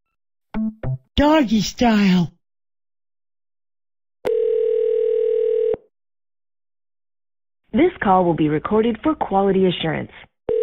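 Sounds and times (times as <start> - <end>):
speech: 0.5 - 2.4, 7.8 - 10.3
telephone dial tone after call hung up: 4.2 - 5.9.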